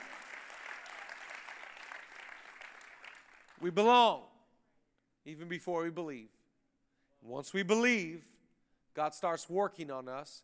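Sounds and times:
audience clapping: 0.0 - 3.8
speech: 3.6 - 4.3, 5.2 - 6.4, 7.2 - 8.3, 9.0 - 10.4.

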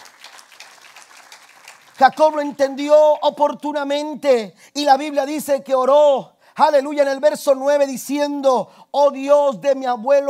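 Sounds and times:
crowd applauding: 0.0 - 2.6
speech: 2.0 - 10.2.

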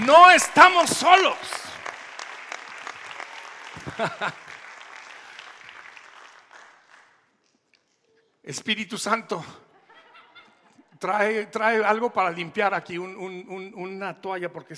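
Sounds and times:
audience applause: 0.0 - 7.3
speech: 0.1 - 1.6, 3.9 - 4.4, 8.4 - 9.6, 11.0 - 14.7
laughter: 3.7 - 4.6, 9.7 - 11.0.

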